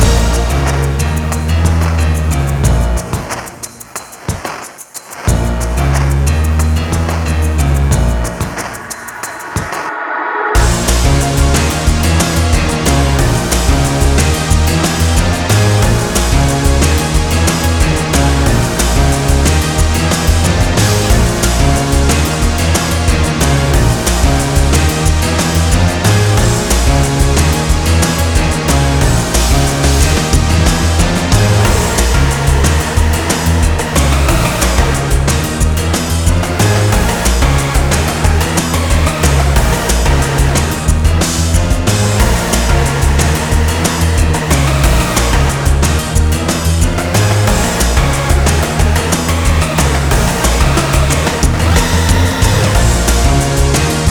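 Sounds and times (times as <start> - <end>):
boss battle background music: 0.0 - 9.9, 10.6 - 54.1.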